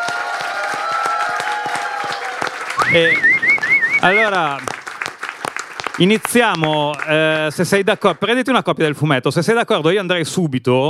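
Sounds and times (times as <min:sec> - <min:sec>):
crowd applauding: 0:00.0 - 0:08.4
speech: 0:02.9 - 0:03.3, 0:04.0 - 0:04.7, 0:06.0 - 0:10.8.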